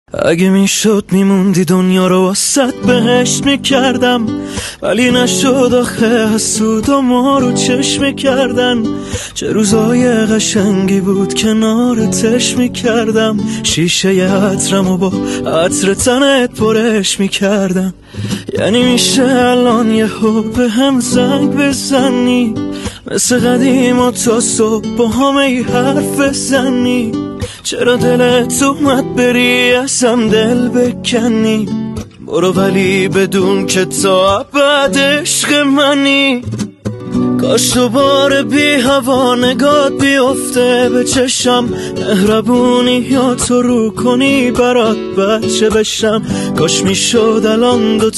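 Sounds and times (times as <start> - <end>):
guitar: 0.1 - 48.1.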